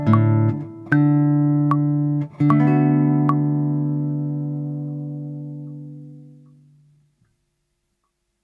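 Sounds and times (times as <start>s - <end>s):
samba for two guitars: 0.0s - 4.7s.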